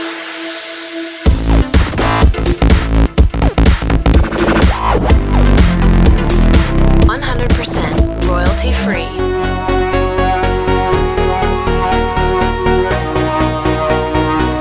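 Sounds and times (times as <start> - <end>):
EDM samples: 0.0 - 14.5.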